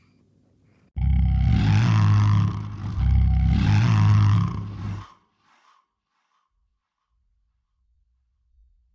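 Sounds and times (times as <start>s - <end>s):
AI-generated scary horror ghost sounds: 1.0s - 5.7s.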